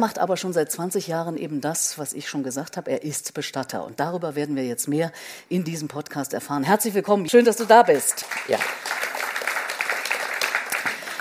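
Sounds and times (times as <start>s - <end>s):
speech: 0.0s - 8.9s
theatre audience applause: 8.0s - 11.1s.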